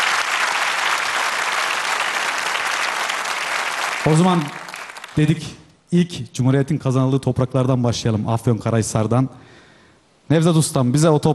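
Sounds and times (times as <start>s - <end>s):
audience applause: 0.0s - 5.3s
speech: 4.0s - 4.6s, 5.2s - 9.6s, 10.3s - 11.3s.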